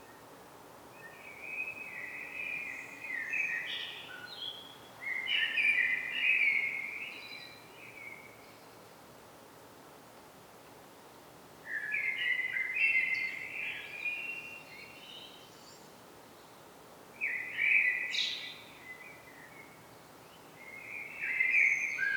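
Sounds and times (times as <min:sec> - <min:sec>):
common blackbird Turdus merula song: 0:01.0 - 0:08.8, 0:11.7 - 0:16.6, 0:17.2 - 0:22.1.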